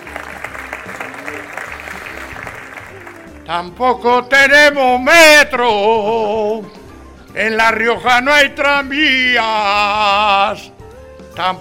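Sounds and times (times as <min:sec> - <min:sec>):
audience applause at award ceremony: 0:00.0 - 0:03.4
speech: 0:03.5 - 0:06.8, 0:07.4 - 0:10.7, 0:11.4 - 0:11.5.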